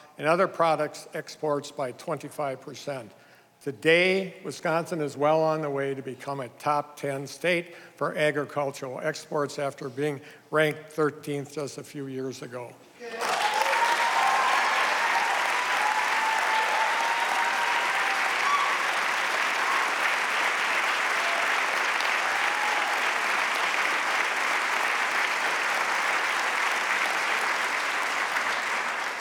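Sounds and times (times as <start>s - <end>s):
speech: 0.2s - 13.2s
faint cheers or whoops: 13.0s - 20.2s, 21.0s - 23.3s
audience applause: 13.0s - 29.1s.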